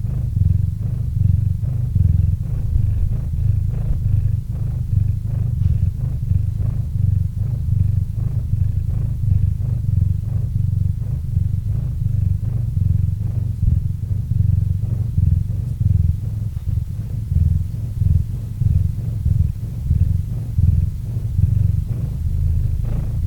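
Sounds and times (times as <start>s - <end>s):
cat purring: 0.0s - 23.2s.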